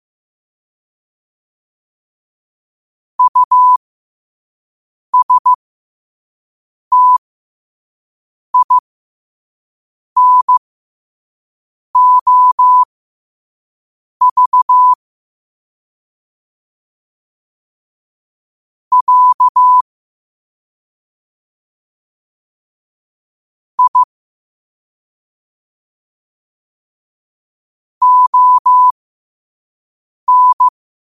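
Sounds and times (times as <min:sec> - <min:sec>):
morse code at 5 wpm: 0:03.2 - 0:03.8, 0:05.2 - 0:05.6, 0:06.9 - 0:07.2, 0:08.6 - 0:08.8, 0:10.2 - 0:10.6, 0:12.0 - 0:12.9, 0:14.2 - 0:15.0, 0:18.9 - 0:19.8, 0:23.8 - 0:24.1, 0:28.0 - 0:28.9, 0:30.3 - 0:30.7.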